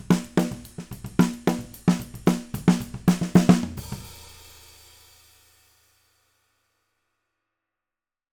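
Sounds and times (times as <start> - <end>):
snare drum: 0.0 - 5.4.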